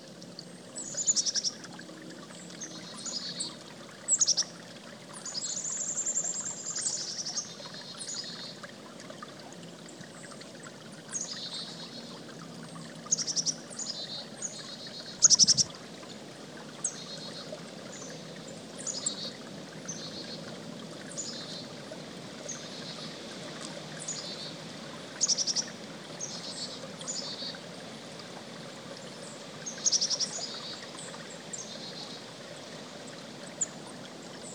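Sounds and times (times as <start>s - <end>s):
creek water rushing: 0.2s - 34.5s
chickadee calling: 15.2s - 15.7s.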